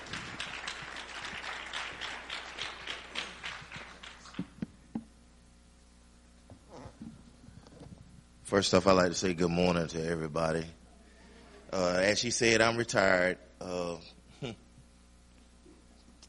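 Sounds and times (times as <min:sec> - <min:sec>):
audience applause welcoming a speaker: 0:00.0 - 0:04.6
speech: 0:08.5 - 0:10.8, 0:11.7 - 0:14.6.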